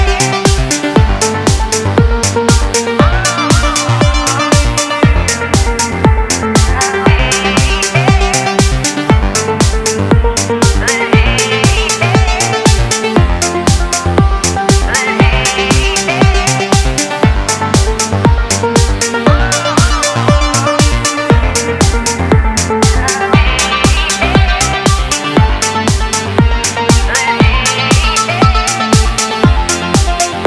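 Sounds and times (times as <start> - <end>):
trance music: 0.0 - 30.4.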